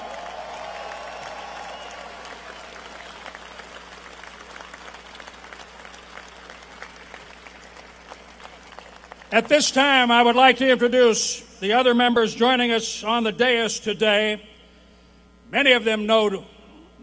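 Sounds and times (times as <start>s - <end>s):
arena crowd applause: 0.0s - 9.5s
speech: 9.3s - 14.5s, 15.5s - 16.5s.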